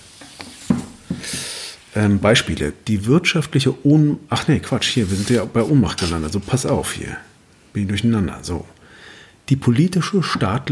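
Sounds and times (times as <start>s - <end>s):
speech: 2.0s - 8.8s, 9.5s - 10.7s
paper rustling: 4.8s - 6.8s.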